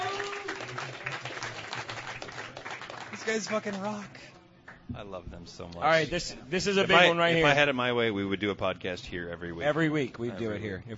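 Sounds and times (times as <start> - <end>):
people cheering at a brewery gathering: 0.0 - 4.1
live audience applause at a brewery gathering: 0.0 - 4.2
speech: 3.3 - 4.3, 5.0 - 10.9.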